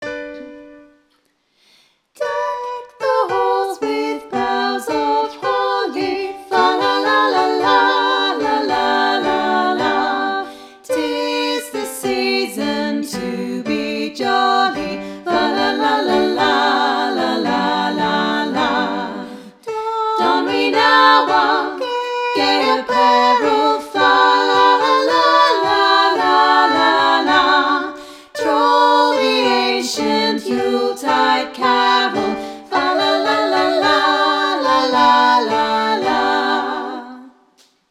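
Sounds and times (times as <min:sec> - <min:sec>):
voices singing a Christmas carol: 0:02.2 - 0:37.4.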